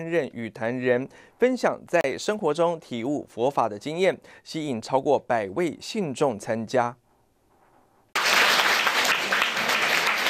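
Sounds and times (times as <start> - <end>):
speech: 0.0 - 7.0
audience applauding: 8.2 - 10.2.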